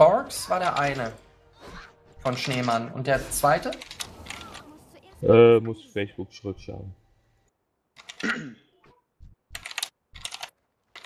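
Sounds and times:
speech: 0.0 - 1.2, 2.2 - 3.9, 5.2 - 7.0
fast typing on a computer keyboard via unmuted voice chat microphone: 9.5 - 11.0.

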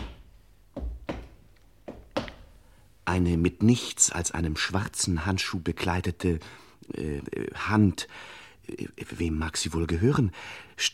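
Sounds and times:
heavy footsteps approaching a couch: 0.0 - 2.8
speech: 3.1 - 10.9.

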